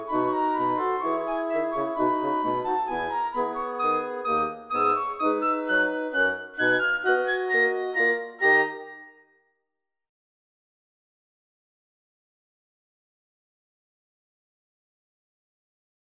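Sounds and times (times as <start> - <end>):
full ensemble playing: 0.8 - 9.0.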